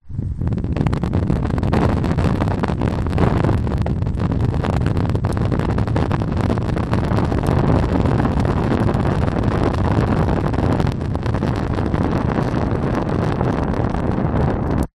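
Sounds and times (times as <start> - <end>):
small flame burning from cigarette lighter: 0.2 - 14.9.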